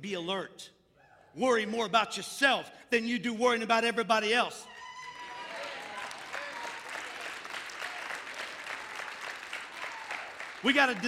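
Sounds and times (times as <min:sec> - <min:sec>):
speech: 0:00.0 - 0:04.8, 0:10.6 - 0:11.0
audience clapping: 0:05.0 - 0:11.0.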